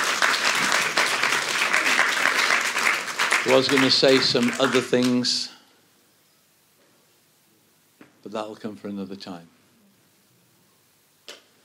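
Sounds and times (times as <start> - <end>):
audience clapping: 0.0 - 5.4
speech: 3.4 - 5.5, 8.3 - 9.6.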